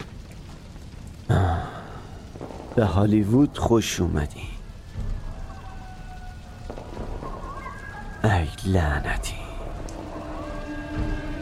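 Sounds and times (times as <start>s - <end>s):
rain falling during a storm: 0.0s - 11.3s
speech: 1.3s - 1.7s, 2.8s - 4.5s, 8.6s - 9.4s
faint tonal lines: 6.7s - 11.3s.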